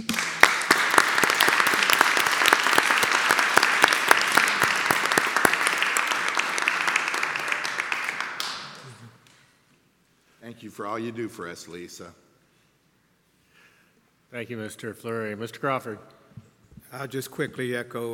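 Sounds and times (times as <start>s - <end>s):
round of applause from audience: 0.0s - 9.2s
speech: 10.8s - 12.2s, 14.3s - 16.2s, 16.9s - 18.1s.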